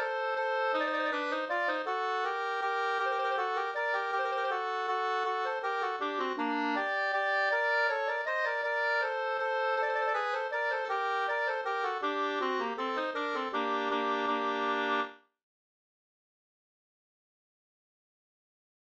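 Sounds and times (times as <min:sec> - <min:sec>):
waltz in G minor: 0:00.2 - 0:15.1.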